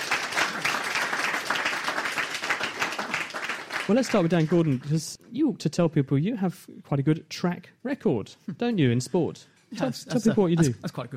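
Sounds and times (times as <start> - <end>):
crowd applause: 0.0 - 5.0
speech: 3.9 - 11.1.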